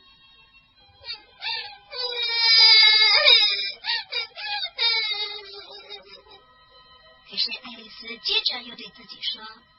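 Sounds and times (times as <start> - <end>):
voice actor sobbing as Alice in a fairy-tale audio drama: 1.0 - 6.4
speech: 8.2 - 9.7.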